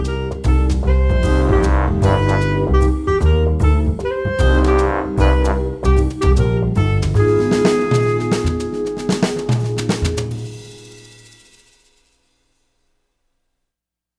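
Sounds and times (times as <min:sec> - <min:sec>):
walking bass line: 0:00.0 - 0:10.6.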